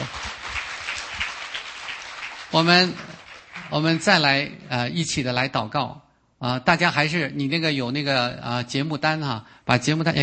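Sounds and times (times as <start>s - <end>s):
audience applause: 0.0s - 4.2s
speech: 2.5s - 3.1s, 3.7s - 10.2s.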